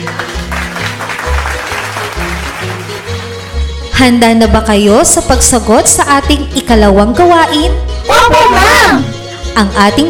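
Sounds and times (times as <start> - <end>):
students clapping for themselves during a class lesson: 0.0 - 3.6
steady music: 0.0 - 10.0
speech: 4.0 - 10.0.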